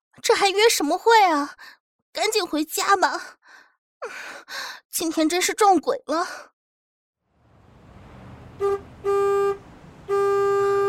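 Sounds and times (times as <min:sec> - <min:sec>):
speech: 0:00.2 - 0:06.5, 0:08.6 - 0:09.3
low traffic rumble: 0:07.2 - 0:10.8
bus horn honking on a street: 0:08.4 - 0:10.8.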